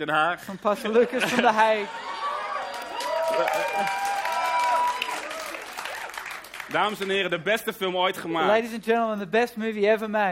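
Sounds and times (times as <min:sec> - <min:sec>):
speech: 0:00.0 - 0:02.2, 0:03.3 - 0:04.1, 0:06.7 - 0:10.3
laughter: 0:00.4 - 0:04.2
audience applause in a church: 0:01.8 - 0:07.4.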